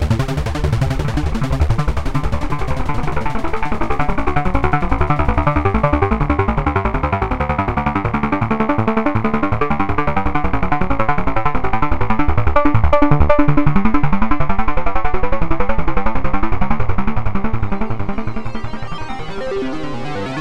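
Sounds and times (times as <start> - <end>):
OB-X synthesizer arpeggio: 0.0 - 20.3.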